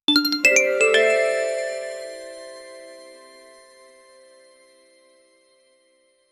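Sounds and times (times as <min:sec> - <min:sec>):
sparkling three-note jingle: 0:00.1 - 0:05.0.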